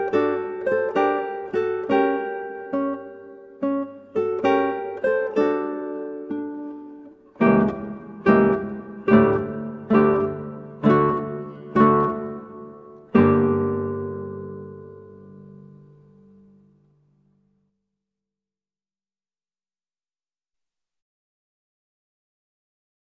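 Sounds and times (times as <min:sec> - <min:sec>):
8-string guitar playing baroque adagio e spiccato: 0:00.0 - 0:17.5.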